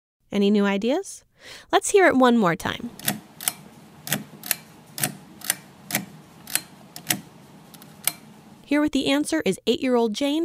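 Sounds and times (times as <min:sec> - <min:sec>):
speech: 0:00.3 - 0:03.1, 0:08.7 - 0:10.4
household lamp switch clicking on and off: 0:02.9 - 0:08.7.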